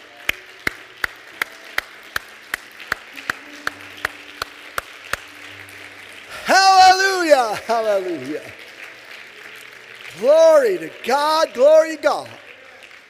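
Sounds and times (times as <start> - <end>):
audience clapping hands: 0.0 - 13.0
speech: 7.7 - 8.6, 10.2 - 12.4.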